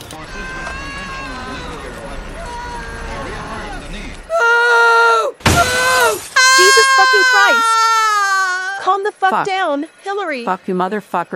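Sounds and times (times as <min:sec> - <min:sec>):
crashing debris: 0:00.0 - 0:04.4, 0:05.4 - 0:07.0
people wailing and shouting: 0:00.0 - 0:08.8
glass breaking from furniture smashing through windows: 0:05.4 - 0:06.4
speech: 0:09.3 - 0:11.3.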